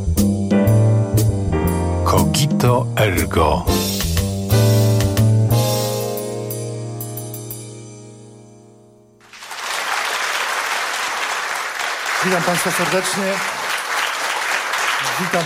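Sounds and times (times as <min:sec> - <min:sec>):
music: 0:00.0 - 0:09.3
speech: 0:02.3 - 0:04.0, 0:12.3 - 0:13.6, 0:15.2 - 0:15.4
studio audience applause: 0:09.2 - 0:15.4.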